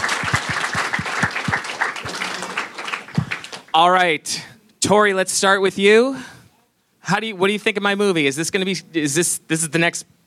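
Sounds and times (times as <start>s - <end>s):
audience applause: 0.0s - 3.8s
speech: 3.8s - 6.4s, 7.1s - 10.2s.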